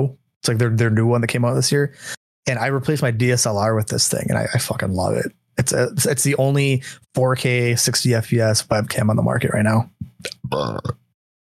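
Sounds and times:
speech: 0:00.0 - 0:11.0
person burping: 0:10.2 - 0:11.1.

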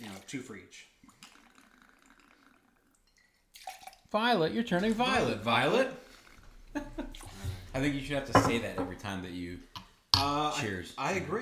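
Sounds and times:
speech: 0:00.2 - 0:01.0, 0:04.1 - 0:06.0, 0:06.8 - 0:11.3
creme de violette liqueur pouring into a glass: 0:01.0 - 0:04.1.

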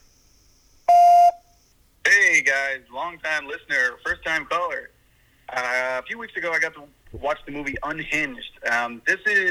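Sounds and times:
answering machine beep: 0:00.9 - 0:01.5
speech: 0:02.6 - 0:04.9, 0:05.5 - 0:09.4.

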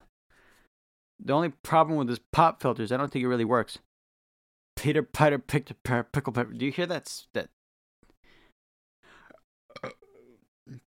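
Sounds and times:
speech: 0:01.2 - 0:03.9, 0:04.8 - 0:07.6
person burping: 0:09.3 - 0:10.8.

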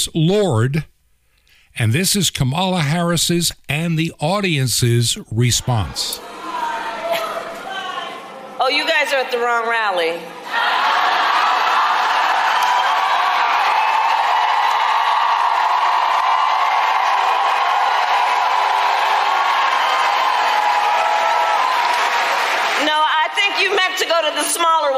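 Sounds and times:
speech: 0:00.0 - 0:00.9, 0:01.8 - 0:06.4, 0:08.6 - 0:10.8
crowd cheering: 0:05.7 - 0:08.5, 0:10.3 - 0:24.4.

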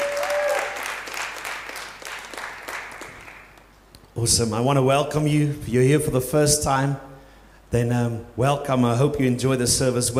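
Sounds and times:
roomful of people applauding the worship team: 0:00.0 - 0:03.7
speech: 0:04.2 - 0:07.1, 0:07.7 - 0:10.1.

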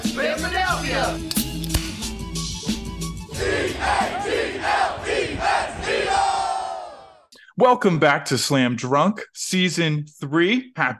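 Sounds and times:
crowd chanting: 0:00.0 - 0:01.2, 0:03.3 - 0:07.3
baseball stadium crowd roaring at Citizens Bank Park as the Phillies take the lead: 0:03.4 - 0:07.3
speech: 0:07.6 - 0:10.9.

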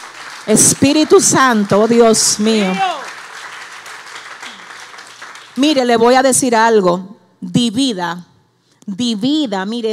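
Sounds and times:
audience applauding: 0:00.0 - 0:05.7
speech: 0:00.4 - 0:03.1, 0:05.6 - 0:09.9.

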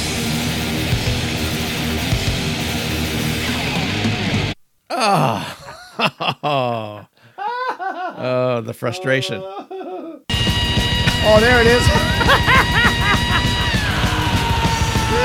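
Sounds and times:
distorted heavy metal music: 0:00.0 - 0:04.6, 0:10.3 - 0:15.2
heavy metal vocalist screaming: 0:04.9 - 0:05.7, 0:13.2 - 0:15.2
speech: 0:04.9 - 0:07.1, 0:08.2 - 0:09.7, 0:11.2 - 0:13.0
laughter: 0:05.4 - 0:08.4, 0:09.1 - 0:10.2, 0:11.8 - 0:15.2.

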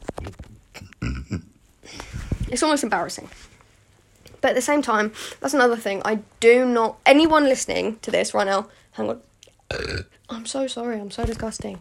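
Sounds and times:
burp: 0:00.8 - 0:01.5, 0:09.7 - 0:10.2
speech: 0:02.5 - 0:03.5, 0:04.4 - 0:11.7.

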